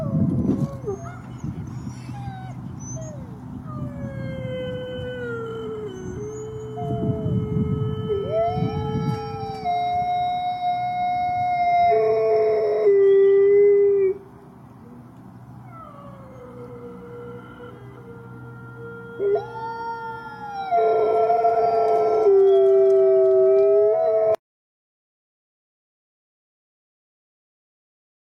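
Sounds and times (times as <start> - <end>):
pack of wolves howling in chorus: 0.0 - 13.5, 15.7 - 24.4.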